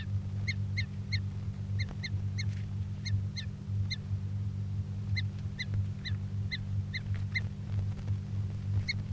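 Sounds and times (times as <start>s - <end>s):
bird calling while being handled: 0.0s - 4.1s, 5.0s - 7.6s, 8.8s - 9.1s
constant low mechanical hum: 0.0s - 9.1s.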